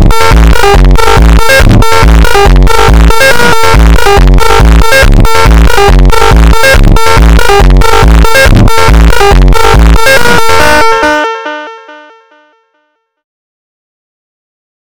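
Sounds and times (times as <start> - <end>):
funk superbass: 0.0 - 10.9.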